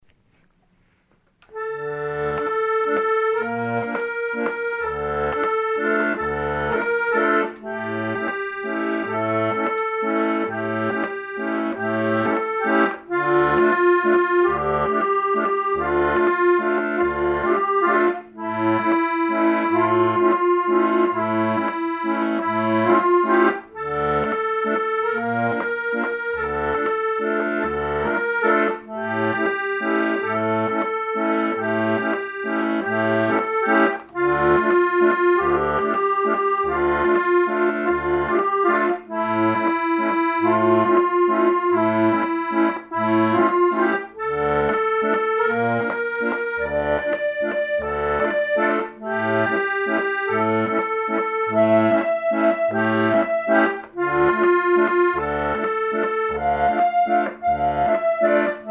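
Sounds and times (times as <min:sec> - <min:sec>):
waltz music: 0:00.2 - 0:58.7.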